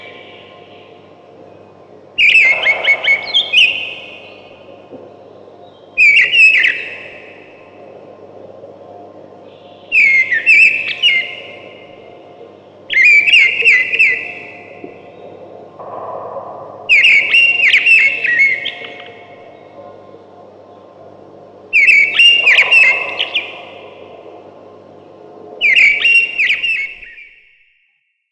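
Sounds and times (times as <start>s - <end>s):
thrush singing loud whistled phrases: 2.2s - 4.6s, 5.9s - 7.6s, 9.9s - 12.0s, 12.9s - 16.2s, 16.8s - 19.8s, 21.7s - 24.3s, 25.6s - 27.8s.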